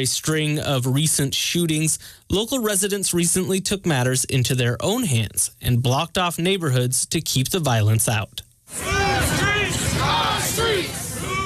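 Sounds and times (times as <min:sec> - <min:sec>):
speech: 0:00.0 - 0:09.4
large crowd chanting and shouting in unison: 0:08.7 - 0:11.4
loud voice babble: 0:08.7 - 0:11.4.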